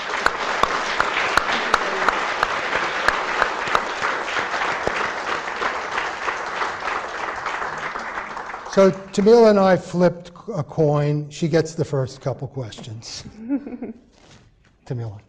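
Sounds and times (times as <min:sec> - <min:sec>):
audience applause welcoming an ambassador at an LSC event: 0:00.0 - 0:09.9
speech: 0:08.8 - 0:15.2.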